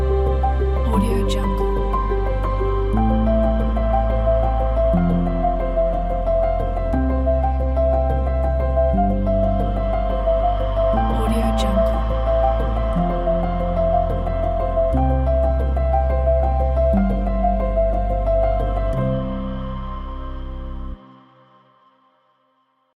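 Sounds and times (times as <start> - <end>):
elegant cinematic music: 0.0 - 22.1.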